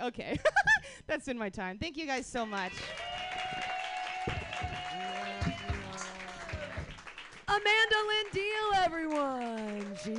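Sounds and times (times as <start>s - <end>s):
speech: 0.0s - 3.1s, 5.0s - 5.5s, 7.5s - 10.1s
audience applause: 2.6s - 10.1s.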